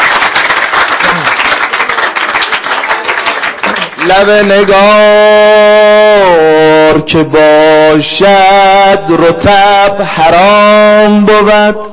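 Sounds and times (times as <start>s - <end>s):
audience applause: 0.0s - 4.7s
speech: 4.1s - 11.9s.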